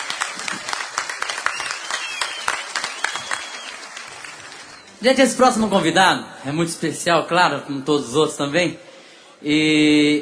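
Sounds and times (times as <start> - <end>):
audience applause: 0.0 - 5.0
speech: 5.0 - 10.2.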